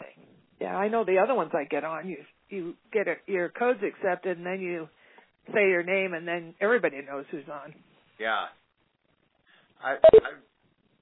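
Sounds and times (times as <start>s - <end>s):
speech: 0.6s - 8.6s, 9.8s - 10.5s
conference call join beep: 10.0s - 10.3s.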